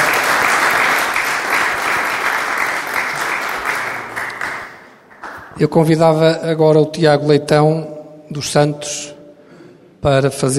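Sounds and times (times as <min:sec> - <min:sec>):
round of applause: 0:00.0 - 0:05.5
speech: 0:05.6 - 0:09.2, 0:10.0 - 0:10.5.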